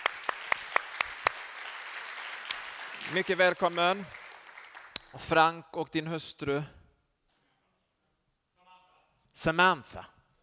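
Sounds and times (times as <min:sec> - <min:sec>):
audience applause: 0:00.0 - 0:05.0
speech: 0:03.1 - 0:04.2, 0:05.1 - 0:06.8, 0:09.4 - 0:10.2.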